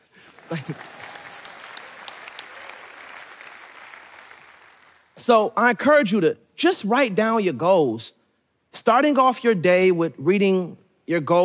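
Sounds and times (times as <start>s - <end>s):
audience clapping: 0.0s - 5.2s
laughter: 0.4s - 1.3s
speech: 0.5s - 1.1s, 5.3s - 11.4s.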